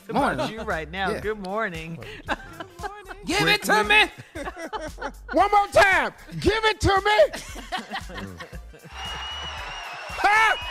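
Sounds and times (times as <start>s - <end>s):
speech: 0.1s - 8.5s
laughter: 2.0s - 6.0s, 7.2s - 10.0s
audience applause: 8.9s - 10.6s.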